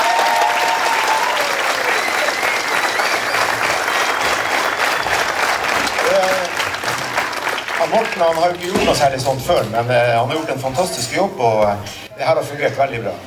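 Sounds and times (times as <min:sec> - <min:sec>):
audience applause: 0:00.0 - 0:08.8
speech: 0:07.9 - 0:13.2.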